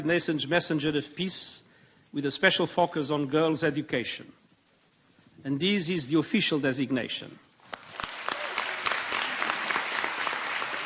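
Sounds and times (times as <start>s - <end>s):
speech: 0.0s - 4.4s, 5.4s - 7.5s
burst of applause: 7.6s - 10.8s.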